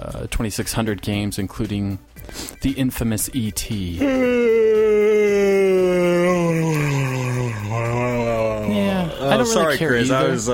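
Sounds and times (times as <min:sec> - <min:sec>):
speech: 0:00.1 - 0:04.8, 0:08.7 - 0:10.5
person yawning: 0:04.0 - 0:09.2.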